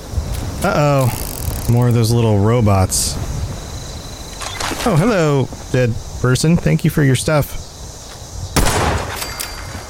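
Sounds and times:
speech: 0:00.6 - 0:03.3, 0:04.8 - 0:07.6
pistol gunshots in a video game: 0:08.6 - 0:09.8.

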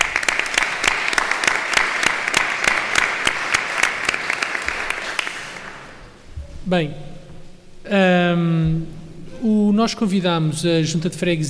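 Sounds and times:
audience applause: 0:00.0 - 0:06.1
speech: 0:06.7 - 0:07.1, 0:07.9 - 0:11.4.

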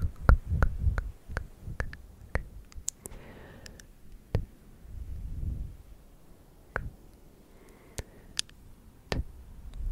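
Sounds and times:
sharp dry tongue clicks: 0:00.0 - 0:04.5, 0:06.7 - 0:09.8
breathy hiss: 0:03.0 - 0:04.1, 0:07.2 - 0:08.6.

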